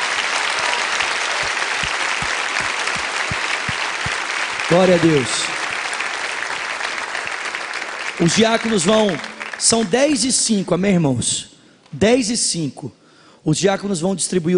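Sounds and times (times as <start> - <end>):
church audience applauding: 0.0 - 10.2
speech: 4.7 - 5.6, 8.2 - 14.5.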